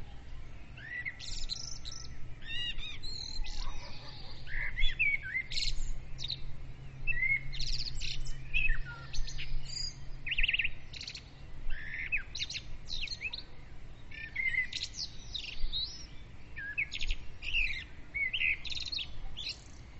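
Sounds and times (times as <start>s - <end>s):
several birds singing at dawn: 0.0s - 19.9s.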